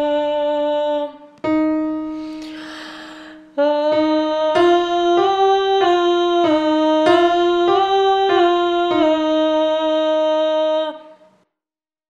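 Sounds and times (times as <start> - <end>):
full piano: 0.0 - 11.4.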